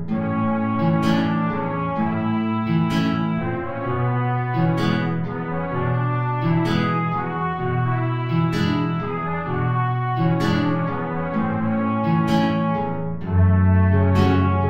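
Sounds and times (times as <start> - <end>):
tango play-along music without trumpet: 0.2 - 14.6.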